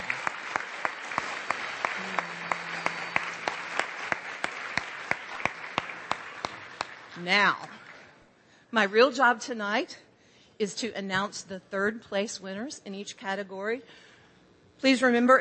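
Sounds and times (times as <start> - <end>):
audience applause: 0.0 - 8.1
speech: 7.2 - 7.8, 8.7 - 10.0, 10.6 - 14.1, 14.8 - 15.3.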